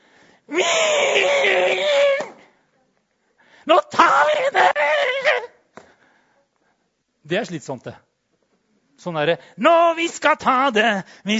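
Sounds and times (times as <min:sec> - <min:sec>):
person imitating a pig squeal: 0:00.5 - 0:02.4, 0:04.0 - 0:05.5
speech: 0:07.3 - 0:08.1, 0:09.0 - 0:11.3.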